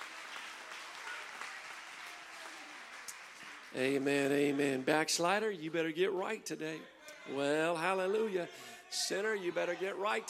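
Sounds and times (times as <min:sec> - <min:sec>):
audience clapping: 0:00.0 - 0:05.0
speech: 0:03.7 - 0:10.2.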